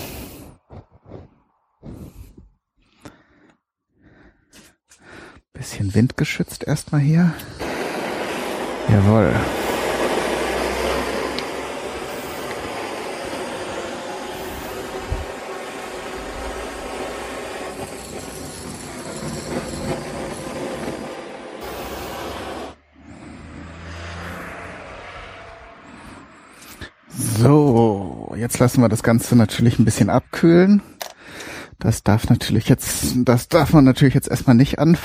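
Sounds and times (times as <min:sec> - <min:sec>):
speech: 0:05.6 - 0:07.6, 0:08.9 - 0:09.6, 0:28.6 - 0:30.9, 0:31.9 - 0:35.0
blowtorch flame caramelizing sugar: 0:07.3 - 0:23.8.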